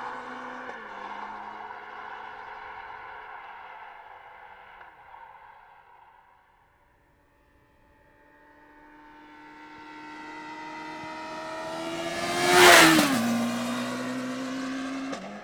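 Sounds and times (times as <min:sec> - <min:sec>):
Honda CBR 1100 XX Superblackbird motorcycle engine: 0:00.0 - 0:04.0, 0:08.4 - 0:15.4.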